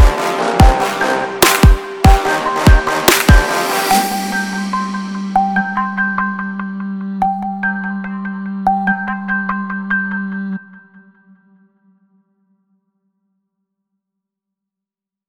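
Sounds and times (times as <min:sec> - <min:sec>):
trap beat: 0:00.0 - 0:09.1.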